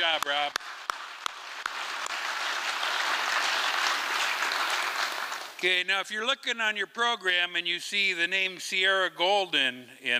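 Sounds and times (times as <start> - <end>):
audience round of applause: 0.0 - 5.6
speech: 5.6 - 10.1.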